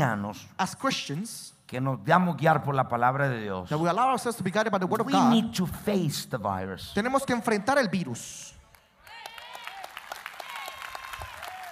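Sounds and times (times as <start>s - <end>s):
speech: 0.0s - 8.6s
round of applause: 8.7s - 11.7s.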